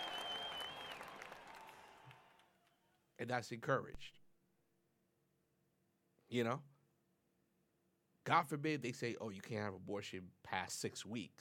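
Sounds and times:
thin whistle: 0:00.0 - 0:01.2
crowd applause: 0:00.0 - 0:02.5
speech: 0:03.2 - 0:04.2, 0:06.3 - 0:06.7, 0:08.2 - 0:11.3.

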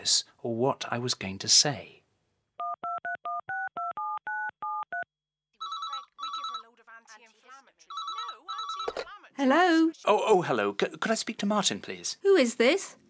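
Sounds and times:
speech: 0:00.0 - 0:02.0, 0:09.4 - 0:13.0
touch-tone beeps as a number is dialed: 0:02.6 - 0:06.7, 0:07.9 - 0:09.1.

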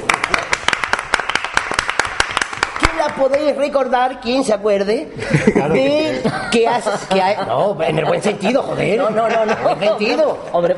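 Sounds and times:
applause: 0:00.0 - 0:03.5
speech: 0:03.1 - 0:10.7
laughter: 0:05.2 - 0:10.7.

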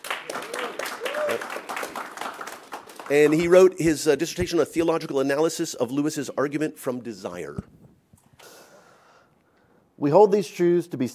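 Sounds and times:
audience applause: 0:00.0 - 0:03.8
faint voices and whoops: 0:00.5 - 0:01.6
speech: 0:03.1 - 0:07.8, 0:10.0 - 0:11.1.

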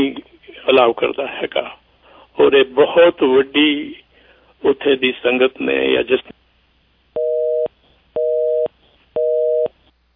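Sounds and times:
speech: 0:00.0 - 0:01.8, 0:02.4 - 0:04.0, 0:04.6 - 0:06.4
telephone busy tone after a disconnected phone line: 0:07.2 - 0:09.7.

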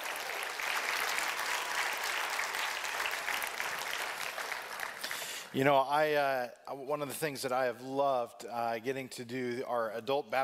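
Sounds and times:
audience applause: 0:00.0 - 0:05.5
speech: 0:05.5 - 0:10.4.

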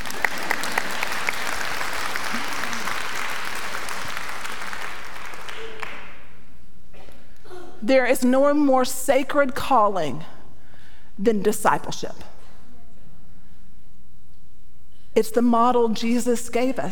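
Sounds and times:
audience applause: 0:00.0 - 0:06.2
speech: 0:07.9 - 0:10.3, 0:11.2 - 0:12.3, 0:15.2 - 0:16.8.

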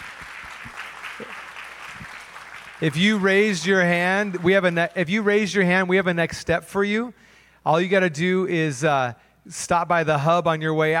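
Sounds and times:
standing church congregation clapping: 0:00.0 - 0:05.9
speech: 0:02.8 - 0:10.9.

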